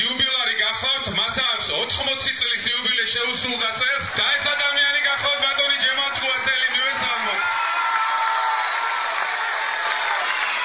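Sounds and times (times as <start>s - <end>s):
speech: 0.5s - 6.5s
crowd cheering at a Georgian folk jubilee concert: 3.2s - 10.6s
audience applause at a Georgian folk jubilee concert: 3.4s - 10.6s.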